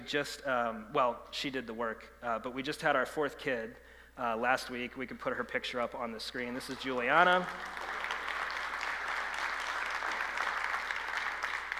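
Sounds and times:
speech: 0.1s - 8.0s
audience clapping: 6.5s - 11.7s.

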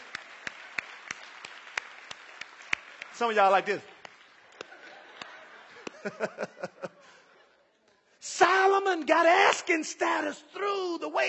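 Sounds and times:
audience applause: 0.0s - 6.8s
speech: 3.2s - 3.9s, 6.0s - 6.9s, 8.4s - 11.2s
laughter: 4.4s - 7.8s.

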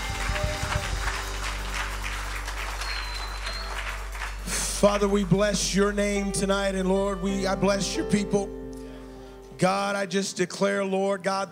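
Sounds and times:
audience hand clapping: 0.0s - 6.0s
faint high whistle: 2.8s - 4.0s
speech: 4.8s - 8.6s, 9.6s - 11.5s.

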